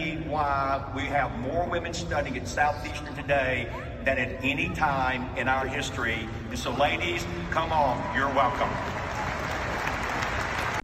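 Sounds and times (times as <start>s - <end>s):
speech: 0.3s - 9.0s
audience applause: 7.6s - 10.8s.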